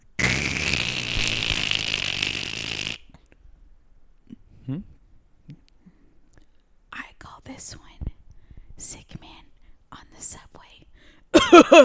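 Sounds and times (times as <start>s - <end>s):
person imitating a man slurping soup from a bowl: 0.0s - 3.1s
speech: 4.7s - 5.6s, 7.5s - 7.9s, 11.5s - 11.8s.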